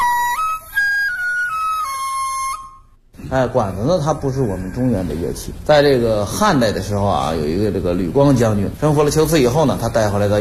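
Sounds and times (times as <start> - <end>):
Chinese bamboo flute dizi playing: 0.0 - 3.0
speech: 3.3 - 10.4.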